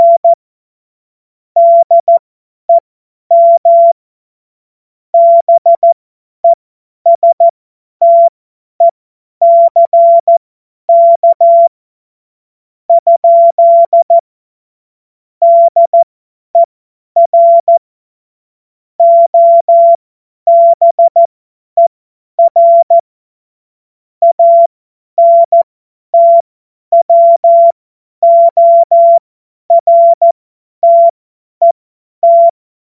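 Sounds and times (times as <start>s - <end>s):
CW Morse code beeps: 0.0s - 0.4s, 1.6s - 4.0s, 5.2s - 11.7s, 12.9s - 14.2s, 15.4s - 17.8s, 19.0s - 23.0s, 24.2s - 25.6s, 26.2s - 32.6s.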